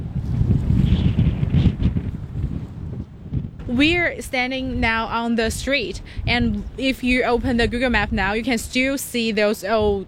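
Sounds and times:
strong wind sweeping across boggy barren open land: 0.0s - 10.0s
speech: 3.7s - 10.0s.

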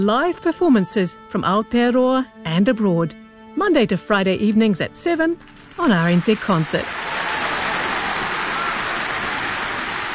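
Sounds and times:
speech: 0.0s - 7.1s
round of applause: 5.5s - 10.1s.

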